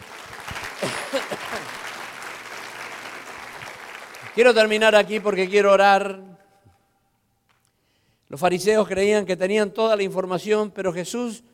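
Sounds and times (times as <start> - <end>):
people applauding: 0.0 - 5.8
speech: 4.4 - 6.3, 8.3 - 11.5.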